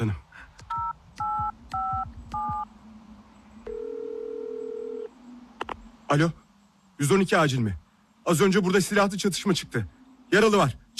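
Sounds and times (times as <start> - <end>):
low hum: 0.0 - 10.9
phone keypad beeps dialing: 0.7 - 2.7
speech: 6.1 - 6.4, 7.0 - 10.9.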